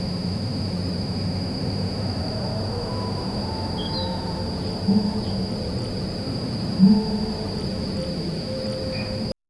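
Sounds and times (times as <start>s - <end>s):
immersive early morning ambience: 0.0s - 9.4s.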